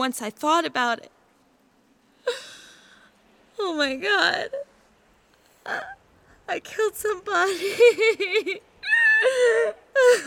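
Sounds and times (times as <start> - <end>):
speech: 0.0 - 1.2, 2.3 - 2.5, 3.6 - 4.7, 5.6 - 10.2
woman sobbing into someone's shoulder during a comforting embrace: 2.2 - 3.0, 5.6 - 6.1, 7.4 - 10.2.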